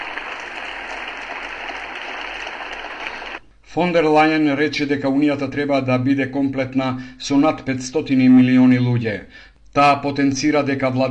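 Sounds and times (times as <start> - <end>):
thunderous applause during Ursula von der Leyen's speech on Europe: 0.0 - 3.4
speech: 3.7 - 11.0.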